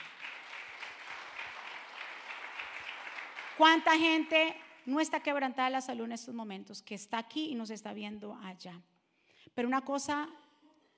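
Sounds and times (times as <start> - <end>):
audience applause: 0.0 - 3.8
speech: 3.6 - 8.9, 9.6 - 10.4.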